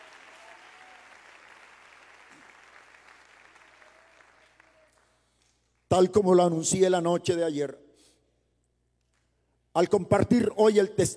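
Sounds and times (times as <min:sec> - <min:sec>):
audience applauding: 0:00.0 - 0:05.4
speech: 0:05.9 - 0:07.8, 0:09.8 - 0:11.1.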